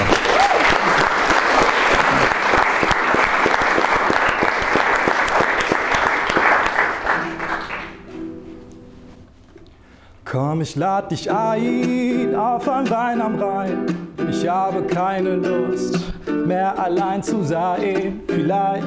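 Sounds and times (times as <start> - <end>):
audience applause: 0.0 - 8.1
speech: 10.6 - 18.8.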